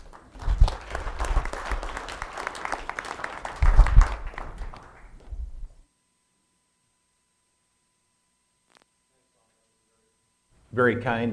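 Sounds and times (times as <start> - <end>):
audience applause welcoming a speaker to the stage: 0.0 - 5.3.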